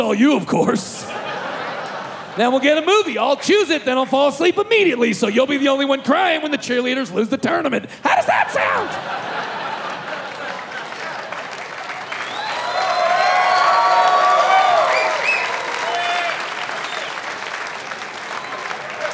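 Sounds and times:
speech: 0.0 - 1.4, 2.4 - 9.3
laughter: 0.8 - 4.5, 8.1 - 12.4
crowd applause: 1.2 - 3.2, 8.6 - 19.1
crowd cheering and whooping: 8.3 - 19.1.

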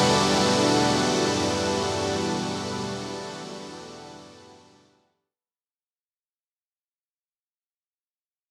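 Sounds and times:
relaxing spa music: 0.0 - 5.0.

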